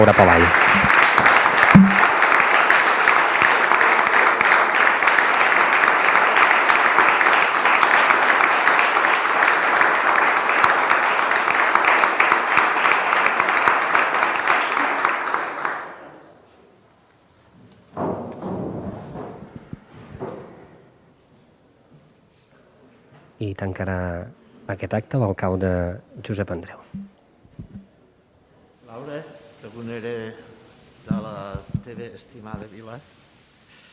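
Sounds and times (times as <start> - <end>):
speech: 0.0 - 1.0, 23.7 - 26.9
audience applauding in the Sala de les Corts: 0.0 - 16.1.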